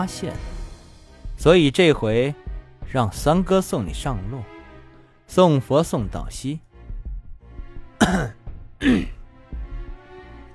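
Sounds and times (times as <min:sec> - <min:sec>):
speech: 0:00.0 - 0:00.5, 0:01.4 - 0:04.5, 0:05.3 - 0:06.7, 0:08.0 - 0:09.2
man coughing: 0:08.0 - 0:09.2.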